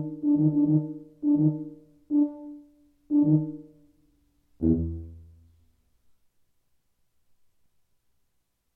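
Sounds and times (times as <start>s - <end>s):
tuba piece: 0.0s - 3.8s, 4.6s - 5.5s.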